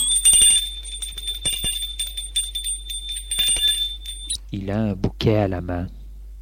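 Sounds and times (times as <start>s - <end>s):
doorbell ringing at a grand town mansion: 0.0s - 4.4s
speech: 4.5s - 6.0s.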